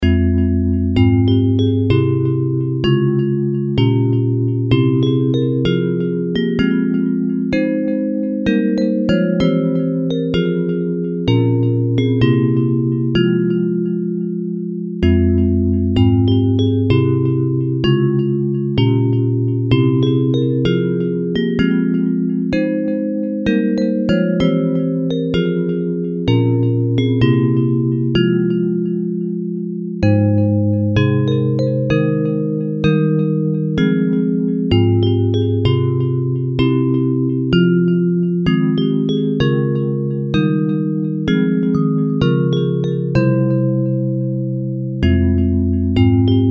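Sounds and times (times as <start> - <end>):
bells: 0.0 - 46.4.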